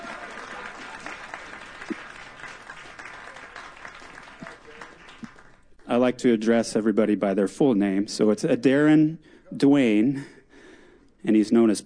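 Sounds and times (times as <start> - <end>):
audience applause for a comedian: 0.0 - 5.7
speech: 5.9 - 10.4, 11.2 - 11.8.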